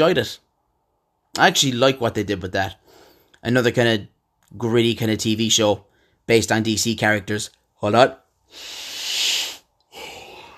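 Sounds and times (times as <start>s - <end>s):
speech: 0.0s - 0.4s, 1.3s - 2.8s, 3.4s - 8.9s
person yawning: 9.0s - 10.5s.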